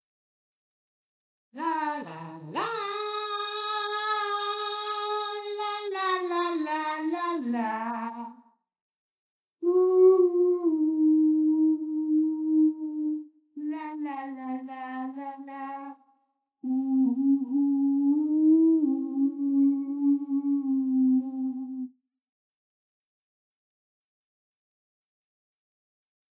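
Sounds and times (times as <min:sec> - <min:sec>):
a cappella singing: 0:01.6 - 0:08.4, 0:09.6 - 0:16.0, 0:16.6 - 0:21.9.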